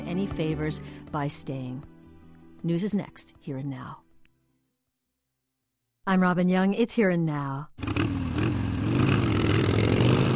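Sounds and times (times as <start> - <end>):
speech: 0.1 - 2.0, 2.6 - 4.0, 6.1 - 8.1
Harley-Davidson motorcycles roaring: 7.8 - 10.3.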